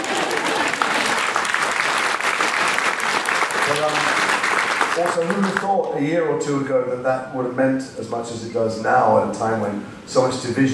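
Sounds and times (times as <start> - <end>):
audience applause: 0.0 - 5.9
speech: 5.0 - 10.7.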